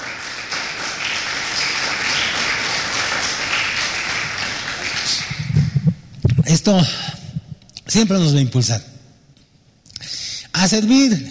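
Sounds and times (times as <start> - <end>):
audience applause: 0.0 - 5.8
speech: 6.6 - 7.2, 7.9 - 8.9, 10.6 - 11.3.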